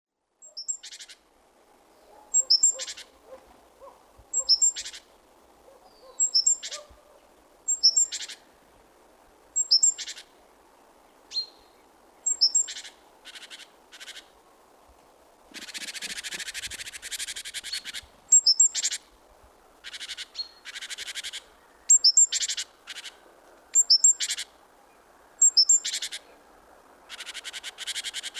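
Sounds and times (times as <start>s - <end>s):
background hiss: 0.1s - 28.3s
great tit calls: 0.4s - 1.2s, 2.0s - 3.4s, 4.3s - 5.1s, 5.7s - 7.0s, 7.7s - 8.4s, 9.6s - 10.3s, 11.3s - 14.3s, 15.5s - 19.1s, 19.8s - 24.6s, 25.4s - 26.3s, 27.1s - 28.3s.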